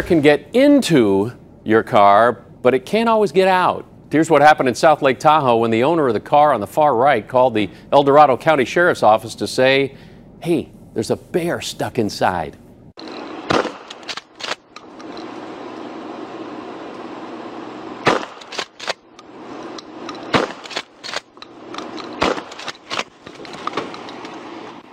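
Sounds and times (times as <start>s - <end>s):
speech: 0.0s - 13.2s
beanbag rounds fired as shotgun-like blasts: 13.3s - 14.7s, 18.0s - 19.0s, 19.9s - 21.4s, 22.1s - 23.2s.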